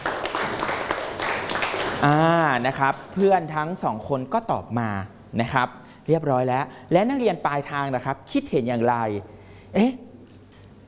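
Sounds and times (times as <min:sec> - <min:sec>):
classroom applause for a student, many hands clapping: 0:00.0 - 0:03.5
speech: 0:02.0 - 0:10.0.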